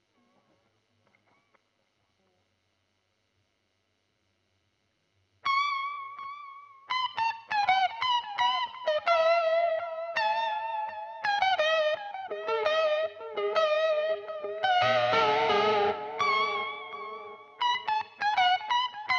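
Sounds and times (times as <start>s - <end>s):
guitar recorded with Royer microphone: 5.4s - 19.1s.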